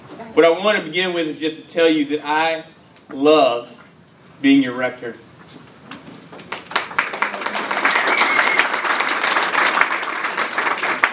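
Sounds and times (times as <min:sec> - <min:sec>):
speech: 0:00.4 - 0:03.8, 0:04.4 - 0:05.2
audience applauding: 0:06.4 - 0:11.1.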